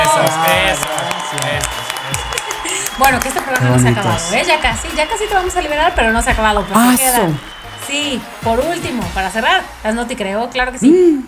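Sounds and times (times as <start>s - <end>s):
applause and cheering sound effect: 0.0s - 8.7s
speech: 0.3s - 2.2s, 3.0s - 11.2s.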